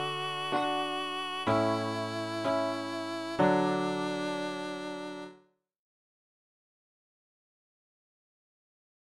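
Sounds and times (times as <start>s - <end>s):
viola school piece: 0.0s - 5.4s.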